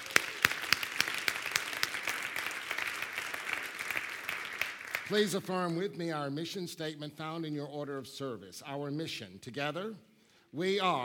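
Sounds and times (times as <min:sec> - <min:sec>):
audience applause: 0:00.0 - 0:05.1
speech: 0:05.1 - 0:11.0.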